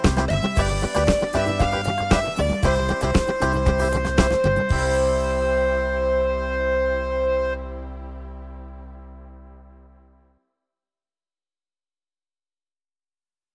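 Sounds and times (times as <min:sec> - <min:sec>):
instrumental music: 0:00.0 - 0:10.3.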